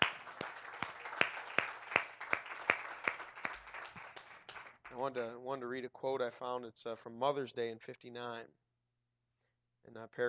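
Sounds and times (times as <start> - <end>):
audience applause: 0.0 - 5.1
speech: 5.0 - 8.6, 9.9 - 10.2.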